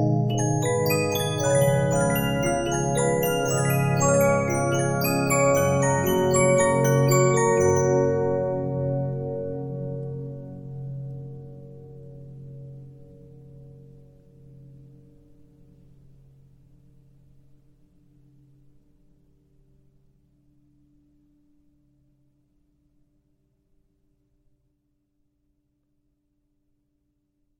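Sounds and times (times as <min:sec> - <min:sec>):
Regina 15-inch disc music box: 0:00.0 - 0:09.2.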